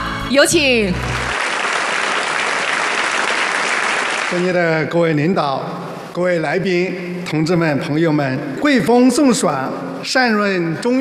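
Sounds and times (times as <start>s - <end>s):
speech: 0.3s - 1.1s, 4.3s - 10.9s
warm applause from audience: 1.0s - 4.6s.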